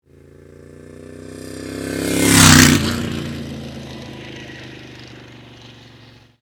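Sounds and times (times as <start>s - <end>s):
Moto Guzzi motorcycle passing by: 0.0s - 6.4s.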